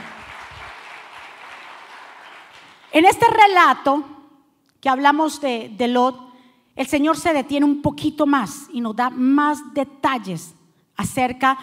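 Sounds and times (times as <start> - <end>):
loud applause: 0.0 - 3.0
speech: 2.9 - 4.2, 4.8 - 11.6.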